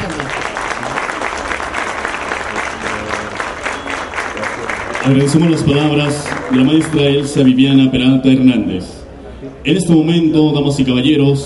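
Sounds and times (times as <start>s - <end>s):
audience applause: 0.0s - 7.9s
speech: 5.0s - 9.0s, 9.6s - 11.4s.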